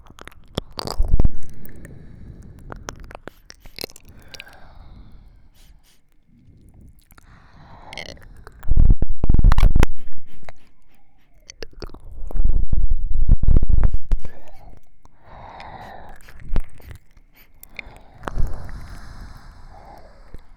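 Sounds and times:
ear licking in both ears: 0.0 - 20.5
sniffing near ears: 3.2 - 8.4, 9.6 - 11.8, 13.8 - 20.5.

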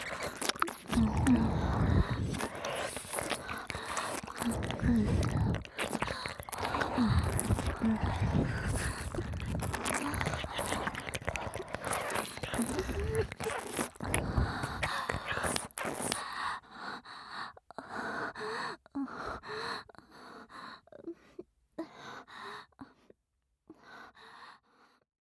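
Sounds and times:
moaning: 0.0 - 14.9
ear licking: 0.0 - 16.3
breathing: 1.1 - 13.4, 14.0 - 25.0.

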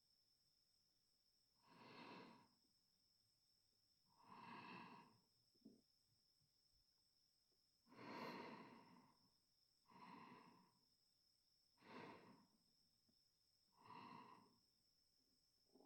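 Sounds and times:
sleeping breath: 1.6 - 2.6, 4.2 - 5.2, 7.9 - 9.2, 9.9 - 10.8, 11.8 - 12.6, 13.8 - 14.6.

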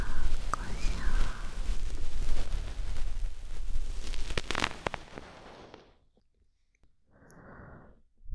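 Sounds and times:
ear blowing: 0.0 - 5.8.

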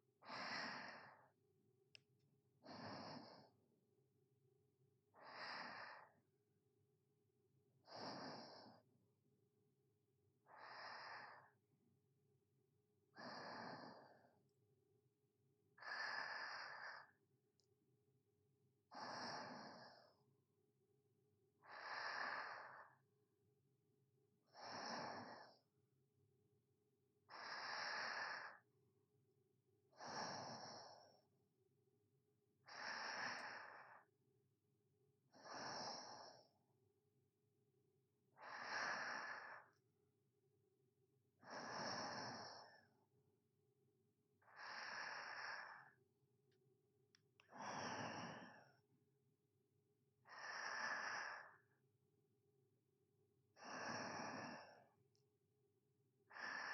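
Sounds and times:
sleeping breathing ASMR: 0.2 - 1.4, 2.6 - 3.6, 5.2 - 6.2, 7.8 - 8.9, 10.4 - 11.6, 13.1 - 14.4, 15.8 - 17.2, 18.9 - 20.3, 21.6 - 23.0, 24.5 - 25.7, 27.3 - 28.7, 29.9 - 31.3, 32.6 - 34.1, 35.3 - 36.6, 38.4 - 39.8, 41.4 - 43.0, 44.4 - 46.0, 47.4 - 48.8, 50.2 - 51.8, 53.5 - 54.9, 56.3 - 56.7.

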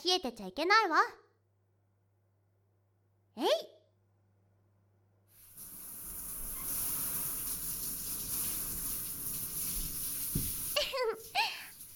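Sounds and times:
speech: 0.0 - 1.3, 3.4 - 3.8, 10.9 - 11.5
warm water pouring over a body in a bath: 5.5 - 11.9.

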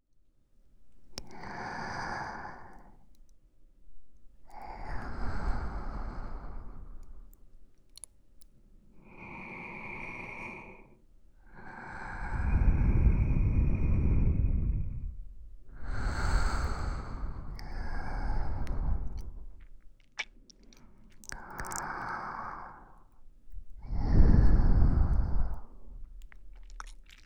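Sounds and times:
sleeping breath in both ears: 4.6 - 7.3, 9.0 - 19.7, 21.4 - 23.2, 23.8 - 26.1
wet squishing sounds: 7.3 - 8.5, 17.5 - 22.6, 25.9 - 27.2.

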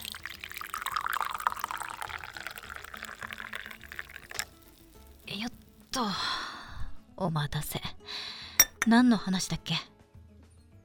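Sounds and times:
freshly boiled water poured from a kettle into a cup: 0.0 - 6.0
speech: 7.2 - 7.9, 8.8 - 9.9.

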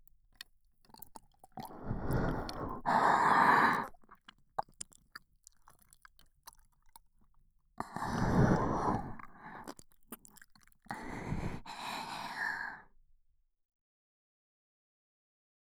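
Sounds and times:
ASMR ear licking sounds: 0.4 - 12.2.

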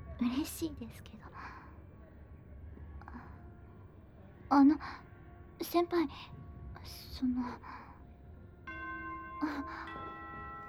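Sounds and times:
speech: 0.2 - 1.6, 4.5 - 7.8, 9.4 - 10.0
school dismissal chime: 8.7 - 10.6.

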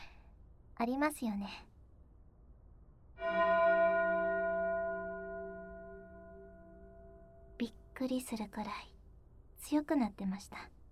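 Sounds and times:
speech: 0.8 - 1.7, 3.2 - 3.6, 7.6 - 8.9, 9.6 - 10.8
bell ringing: 3.2 - 7.6.

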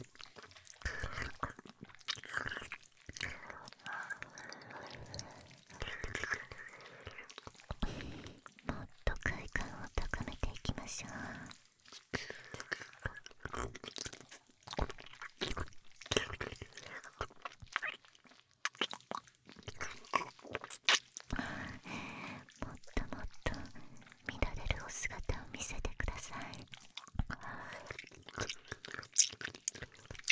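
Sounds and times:
binaural ear licking sounds: 0.0 - 30.3.

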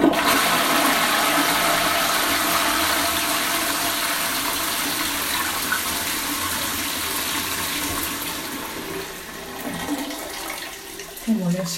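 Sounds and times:
toilet flushing: 0.0 - 11.7.

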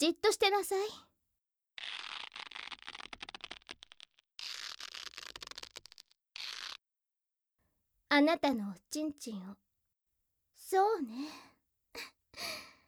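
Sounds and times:
speech: 0.0 - 1.1, 8.1 - 9.6, 10.7 - 12.6
duct tape being pulled and wrapped around wrists: 1.8 - 6.9.

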